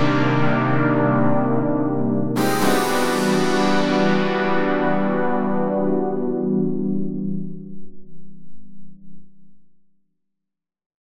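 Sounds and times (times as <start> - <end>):
synth texture chords: 0.0 - 7.6.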